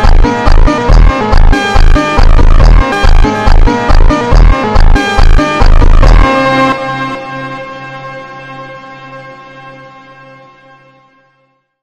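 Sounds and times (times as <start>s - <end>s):
phonk montagem music: 0.0s - 9.0s.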